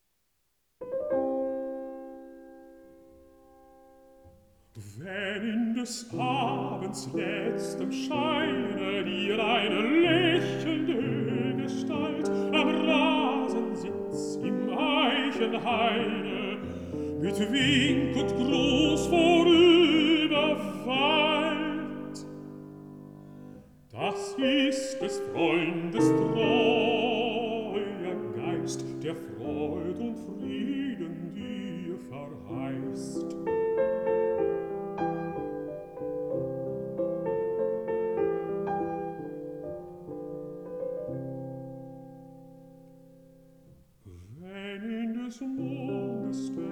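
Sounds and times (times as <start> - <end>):
piano: 0.7 - 46.6
person singing: 4.8 - 22.6, 23.9 - 33.4, 44.1 - 46.6.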